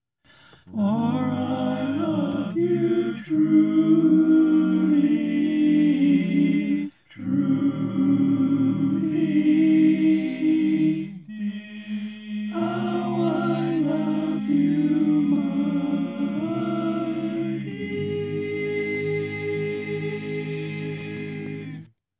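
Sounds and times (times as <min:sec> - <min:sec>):
tenor singing barbershop tag: 0:00.7 - 0:21.9.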